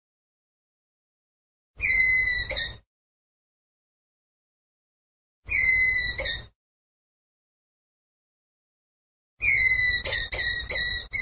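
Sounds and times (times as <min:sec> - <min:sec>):
ground squirrel whistled call: 0:01.8 - 0:02.8, 0:05.5 - 0:06.5, 0:09.4 - 0:11.2.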